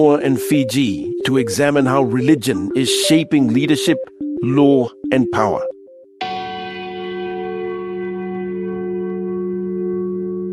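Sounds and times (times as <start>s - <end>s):
speech: 0.0s - 5.7s
church bells ringing in Apia Samoa: 6.2s - 10.5s.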